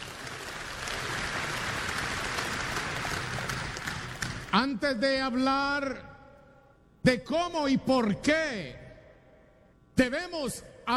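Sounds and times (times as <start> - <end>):
crowd applauding: 0.0 - 4.5
speech: 4.5 - 6.1, 7.0 - 8.8, 10.0 - 10.9.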